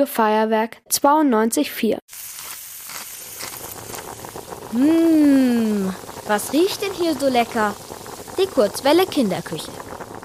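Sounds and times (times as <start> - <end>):
speech: 0.0 - 2.6, 4.7 - 9.9
pancakes sizzling in a frying pan: 2.1 - 10.2.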